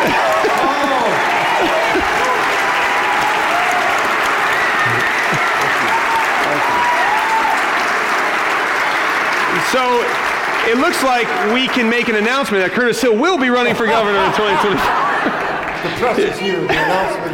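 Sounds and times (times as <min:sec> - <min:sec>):
laughter: 0:00.0 - 0:02.8, 0:04.8 - 0:06.9, 0:13.3 - 0:17.3
faint cheers and voices: 0:00.0 - 0:12.6
audience applause: 0:00.0 - 0:16.7
speech: 0:10.7 - 0:17.3.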